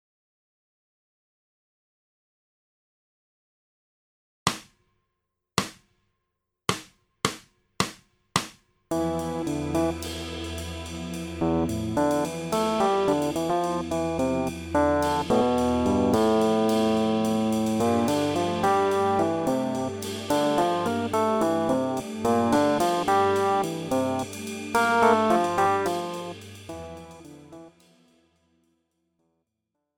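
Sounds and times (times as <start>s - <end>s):
modal improvisation: 8.9s - 27.8s.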